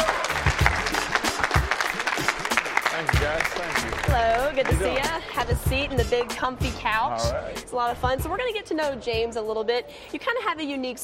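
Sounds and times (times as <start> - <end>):
crowd whoops: 0.0 - 2.5
audience applause: 0.0 - 5.4
speech: 3.8 - 11.0.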